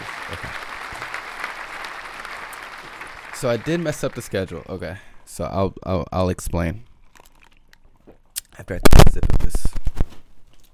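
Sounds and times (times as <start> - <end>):
applause sound effect: 0.0 - 4.8
speech: 3.4 - 6.9, 8.6 - 9.7.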